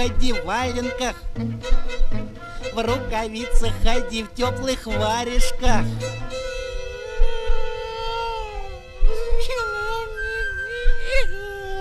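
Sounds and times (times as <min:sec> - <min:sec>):
speech: 0:00.0 - 0:06.4
person imitating a cat crying with a wavering whimper: 0:06.8 - 0:11.7.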